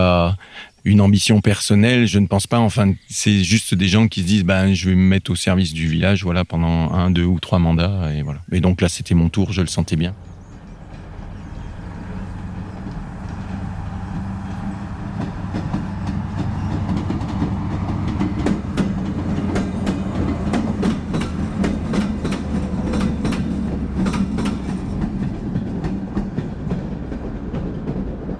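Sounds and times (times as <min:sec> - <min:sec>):
speech: 0:00.3 - 0:10.4
train running on a single-track railway line: 0:05.6 - 0:28.3
wheels clacking over rail joints: 0:09.4 - 0:28.3.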